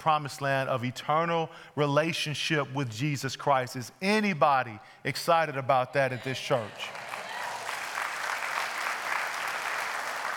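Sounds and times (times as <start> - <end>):
speech: 0.0 - 7.1
light scattered applause, golf claps: 6.7 - 10.3.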